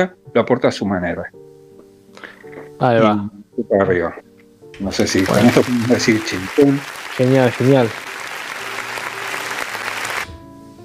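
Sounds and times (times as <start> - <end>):
speech: 0.0 - 1.4, 2.2 - 8.1
applause: 4.8 - 10.4.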